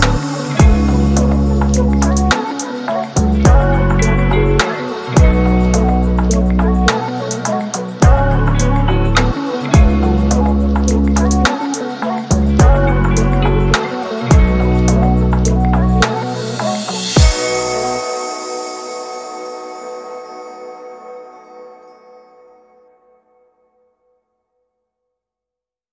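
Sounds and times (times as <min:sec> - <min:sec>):
rap beat: 0:00.0 - 0:18.0.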